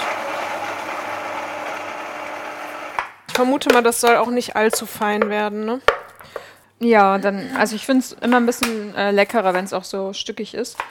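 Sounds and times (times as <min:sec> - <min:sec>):
food processor chopping chickpeas and onions: 0:00.0 - 0:03.2
speech: 0:03.4 - 0:10.9.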